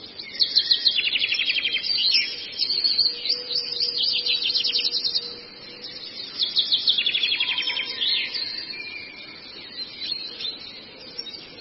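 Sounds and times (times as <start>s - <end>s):
Long-tailed shrike twittering song: 0.0s - 11.6s.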